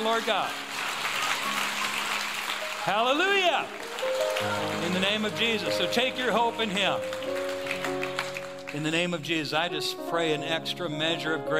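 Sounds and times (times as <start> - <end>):
speech: 0.0 - 0.7, 2.8 - 7.4, 8.7 - 11.5
audience clapping hands in praise: 0.0 - 9.2.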